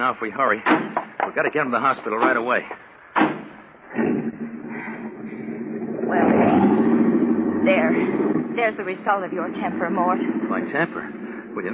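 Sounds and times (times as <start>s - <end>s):
speech: 0.0s - 2.9s, 7.6s - 11.7s
back door opened in a hurry: 3.2s - 3.6s
low rumble and rustle: 3.6s - 11.7s.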